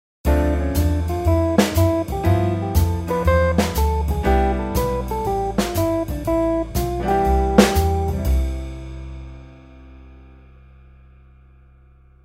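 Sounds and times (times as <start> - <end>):
musical scale: 0.3 - 9.8.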